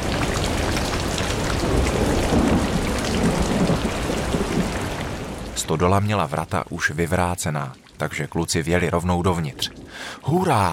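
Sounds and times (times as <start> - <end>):
thunderstorm: 0.0 - 5.3
heavy rain: 0.0 - 10.7
speech: 5.7 - 10.7.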